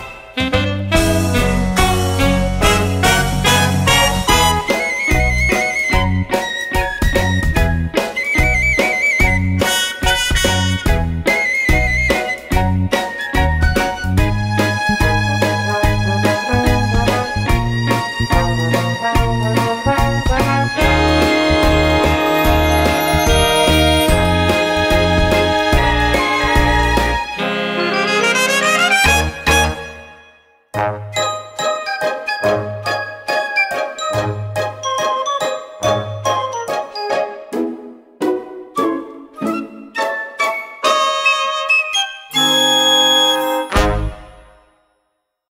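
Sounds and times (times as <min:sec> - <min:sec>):
instrumental music: 0:00.0 - 0:44.8.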